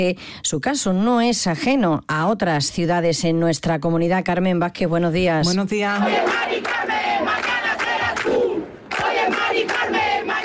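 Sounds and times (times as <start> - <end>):
speech: 0.0 - 7.6
protest crowd chanting shouts: 6.0 - 10.4.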